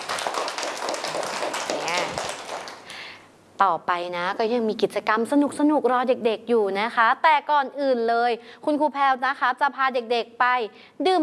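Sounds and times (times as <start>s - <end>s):
children clapping hands: 0.0s - 3.0s
speech: 3.6s - 11.2s.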